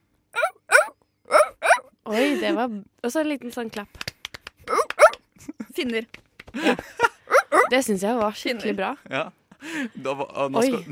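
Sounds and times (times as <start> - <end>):
person imitating a seal barking: 0.4 - 1.9, 4.7 - 5.2, 7.3 - 7.8
speech: 2.1 - 4.0, 5.5 - 10.9.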